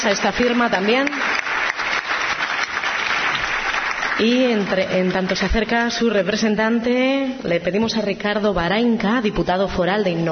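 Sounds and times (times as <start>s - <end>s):
speech: 0.0s - 1.3s, 4.2s - 10.3s
audience applause at an award ceremony in Vizcaya: 0.0s - 5.4s.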